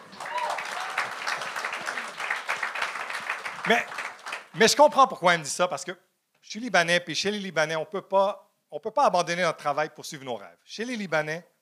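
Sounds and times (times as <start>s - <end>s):
audience applause: 0.0s - 4.7s
speech: 3.6s - 11.5s.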